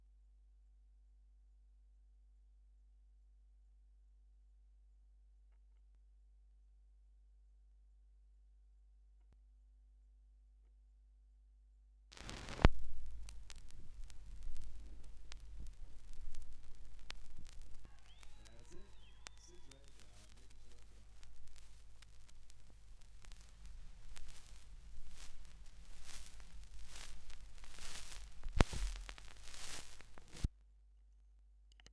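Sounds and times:
vinyl record noise: 12.1s - 30.5s.

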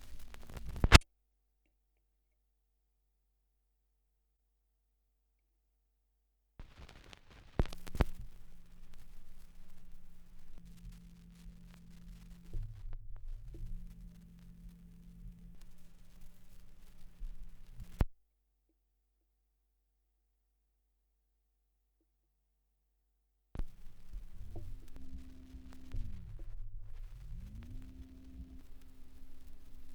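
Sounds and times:
78rpm gramophone record surface noise: 0.0s - 1.0s, 6.6s - 18.1s, 23.6s - 29.9s.

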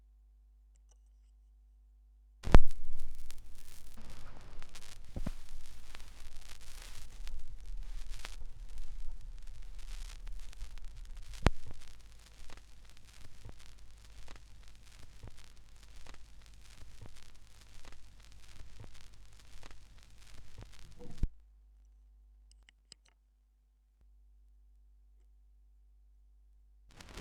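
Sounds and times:
vinyl record noise: 2.4s - 21.3s, 26.9s - 27.1s.

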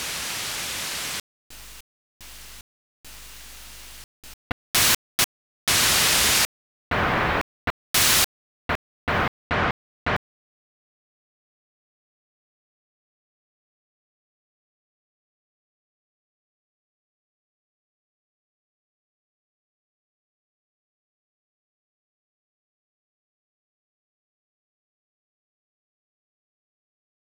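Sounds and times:
noise: 0.0s - 10.2s.

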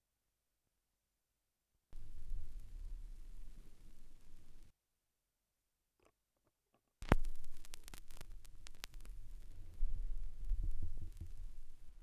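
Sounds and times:
vinyl record crackle: 2.0s - 4.7s, 7.0s - 12.0s.

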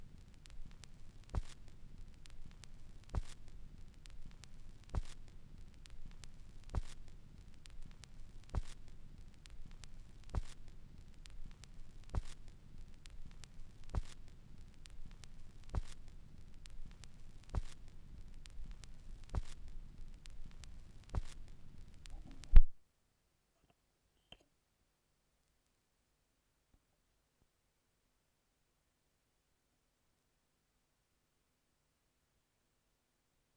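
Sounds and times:
vinyl record noise: 0.0s - 22.7s.

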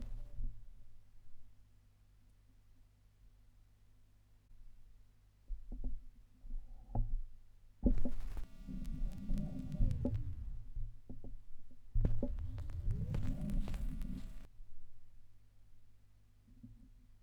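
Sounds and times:
vinyl record noise: 0.0s - 0.4s, 7.9s - 11.0s, 12.0s - 14.5s.

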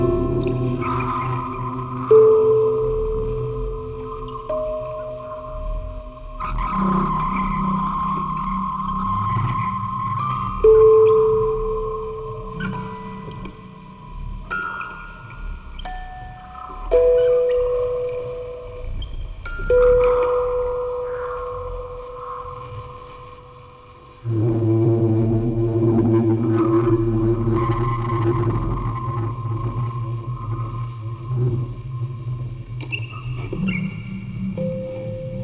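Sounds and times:
quartet of music boxes playing: 0.0s - 9.1s, 10.3s - 24.3s
field recording ambience: 0.0s - 35.4s.

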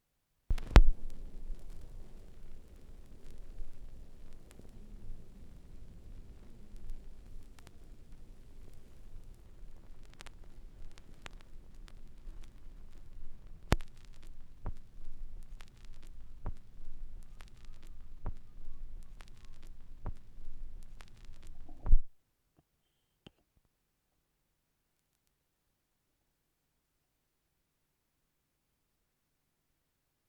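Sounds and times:
vinyl record noise: 0.5s - 22.1s.

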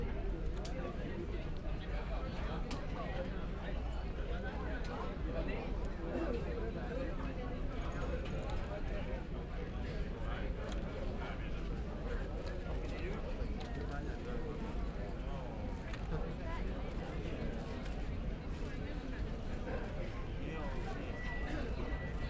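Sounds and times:
airport terminal hall ambience in Istanbul: 0.2s - 22.2s.

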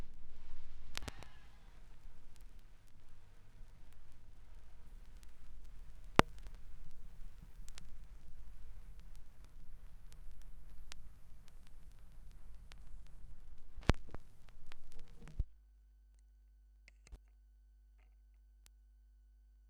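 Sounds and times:
45 RPM vinyl record noise: 0.0s - 15.6s.

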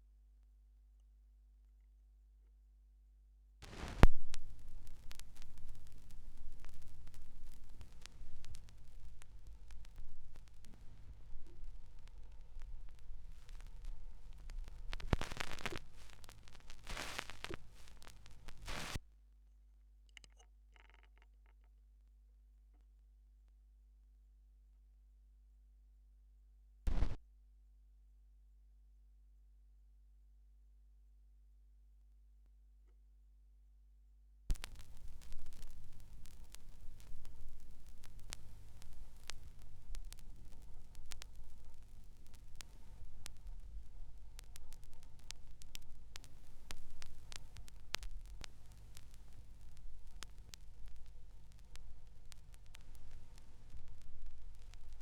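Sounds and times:
vinyl record noise: 3.6s - 19.0s, 26.9s - 27.2s, 34.5s - 55.0s.

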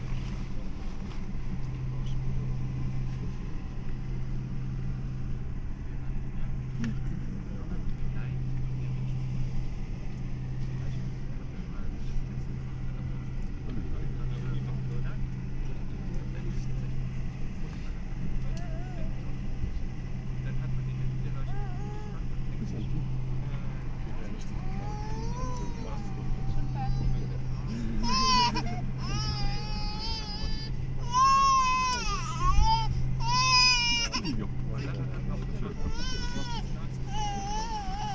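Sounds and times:
train at Stansted: 0.0s - 38.1s.

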